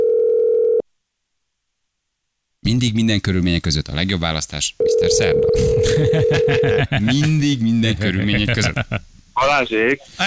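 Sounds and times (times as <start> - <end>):
telephone dial tone while calling a listener: 0.0 - 0.8
speech: 2.7 - 10.2
laughter: 5.6 - 9.0.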